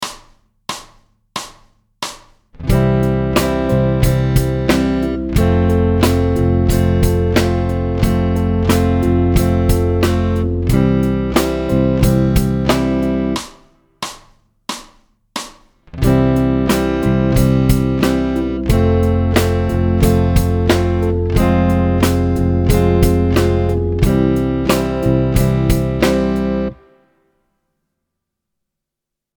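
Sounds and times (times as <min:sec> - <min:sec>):
musical chord: 0:02.7 - 0:13.4, 0:16.0 - 0:27.2.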